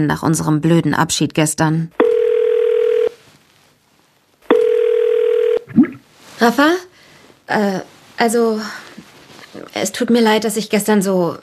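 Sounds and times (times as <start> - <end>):
speech: 0.0 - 2.1, 6.4 - 6.9, 7.5 - 8.8, 9.6 - 11.4
ringback tone of an outgoing phone call: 2.0 - 3.2, 4.5 - 5.7.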